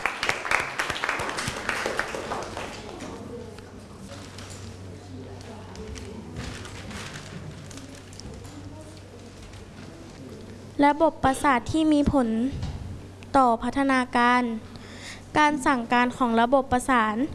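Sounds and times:
classroom applause: 0.0 - 3.3
speech: 10.8 - 12.6, 13.3 - 14.7, 15.4 - 17.3.

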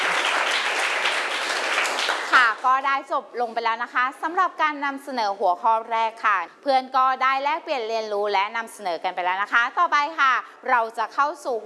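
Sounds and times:
classroom group clapping: 0.0 - 2.8
speech: 2.6 - 11.6.

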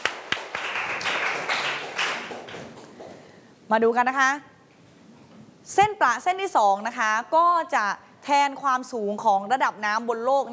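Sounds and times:
group of students clapping: 0.0 - 3.2
speech: 3.7 - 4.5, 5.7 - 10.5.

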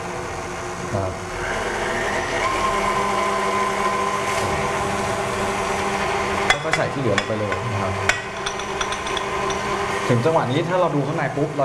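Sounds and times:
speech: 0.9 - 1.3, 6.8 - 8.3, 10.1 - 11.6
electric mixer beating a mixture at low speed: 1.2 - 10.4.

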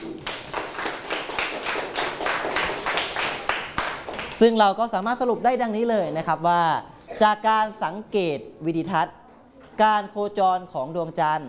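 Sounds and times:
clapping for a classmate: 0.0 - 4.5
speech: 4.4 - 9.2, 9.8 - 11.4.

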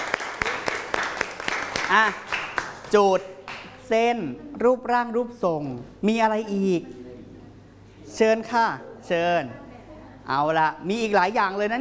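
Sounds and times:
classroom students clapping for a classmate: 0.0 - 3.7
speech: 1.9 - 7.0, 8.2 - 9.6, 10.3 - 11.8.

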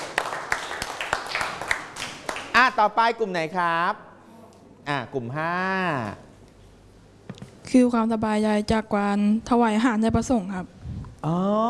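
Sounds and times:
classroom group clapping for a classmate: 0.0 - 2.6
speech: 2.6 - 4.1, 4.8 - 6.3, 7.7 - 11.6.

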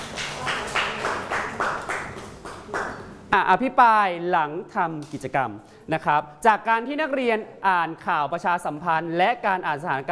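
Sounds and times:
classroom clapping for presenting groups: 0.0 - 3.2
speech: 3.3 - 10.1.

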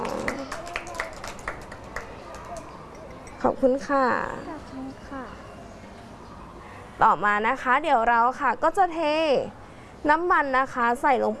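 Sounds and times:
children clapping hands: 0.0 - 3.3
speech: 3.4 - 4.9, 7.0 - 11.3.

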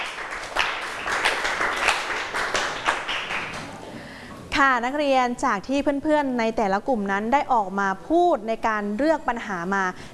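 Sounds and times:
students clapping for classmates: 0.0 - 4.0
speech: 4.6 - 10.1.

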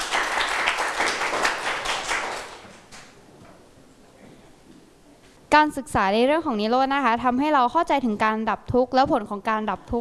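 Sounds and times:
classroom clapping: 0.0 - 3.2
speech: 5.5 - 9.9.

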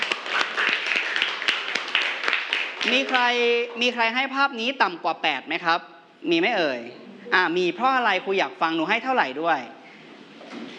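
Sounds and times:
group of children clapping in a classroom: 0.0 - 3.4
speech: 2.8 - 9.8.

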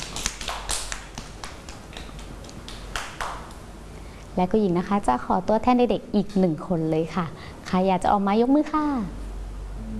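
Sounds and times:
children clapping: 0.0 - 3.6
speech: 4.4 - 9.2.

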